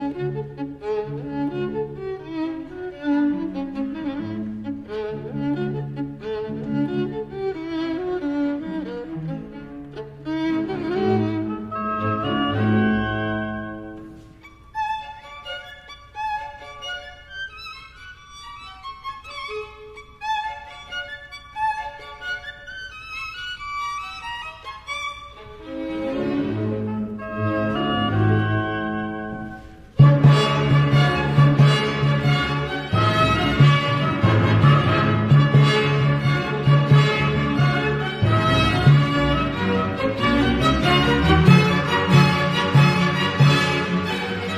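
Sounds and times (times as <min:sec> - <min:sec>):
violin concerto with baroque orchestra: 0:00.0 - 0:44.5.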